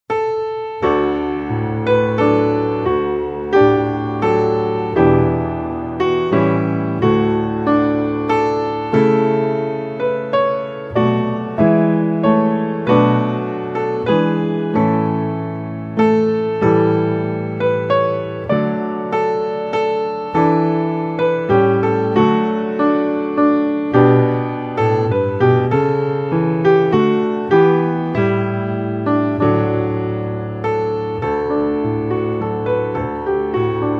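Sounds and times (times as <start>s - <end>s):
music: 0.0s - 33.9s.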